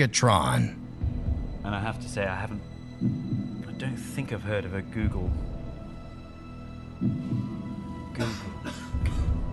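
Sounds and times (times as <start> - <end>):
speech: 0.0 - 0.8, 1.6 - 5.5, 7.0 - 7.6, 8.2 - 9.4
cough: 8.2 - 9.4.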